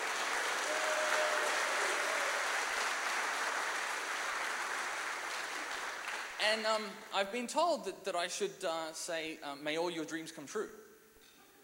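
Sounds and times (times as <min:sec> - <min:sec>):
audience applause: 0:00.0 - 0:06.4
speech: 0:06.4 - 0:10.9.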